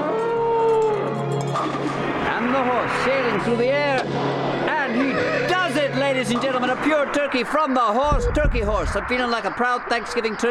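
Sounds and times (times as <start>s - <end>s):
ghostly singing: 0.0s - 8.2s
speech: 2.5s - 5.4s, 6.0s - 10.4s.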